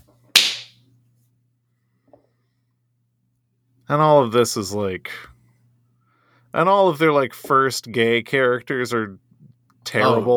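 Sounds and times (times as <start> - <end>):
hand clapping: 0.4 - 0.8
speech: 3.9 - 5.4, 6.5 - 9.3, 9.9 - 10.3.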